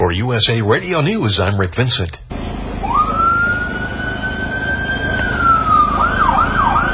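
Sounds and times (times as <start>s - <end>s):
speech: 0.1s - 2.3s
ambulance siren: 2.8s - 6.9s.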